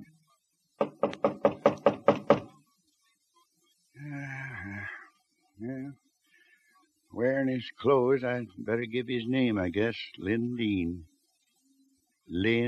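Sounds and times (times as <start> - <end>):
knocking on a door: 0.8 - 2.6
speech: 7.5 - 11.1, 12.3 - 12.6.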